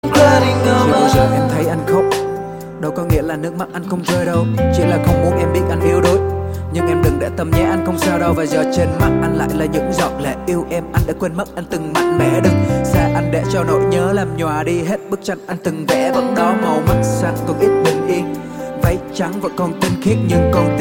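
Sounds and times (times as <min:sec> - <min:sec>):
rap ringtone: 0:00.0 - 0:20.7.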